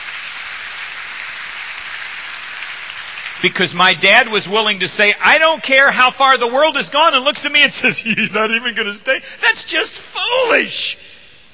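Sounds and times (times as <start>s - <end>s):
audience applause: 0.0s - 4.8s
speech: 3.4s - 11.0s.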